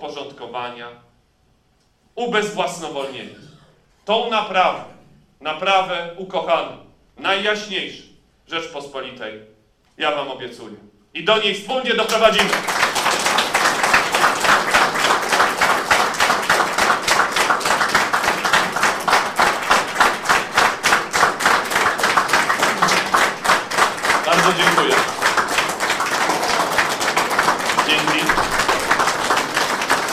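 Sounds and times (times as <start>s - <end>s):
speech: 0.0s - 1.1s, 2.2s - 12.8s
audience clapping and applause: 12.1s - 30.1s.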